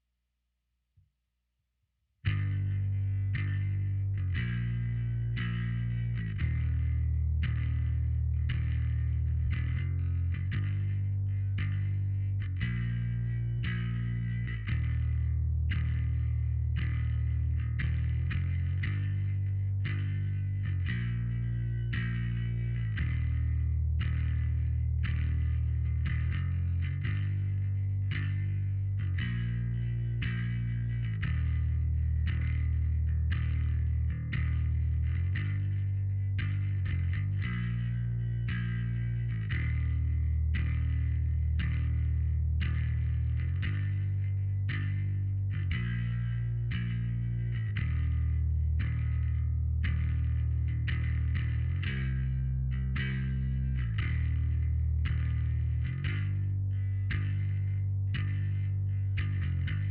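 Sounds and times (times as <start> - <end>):
bass: 0.0 - 0.2, 2.1 - 59.9.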